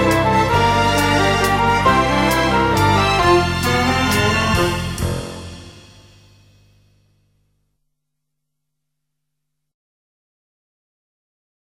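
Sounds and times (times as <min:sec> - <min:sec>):
European waltz ice dance music: 0:00.0 - 0:06.3.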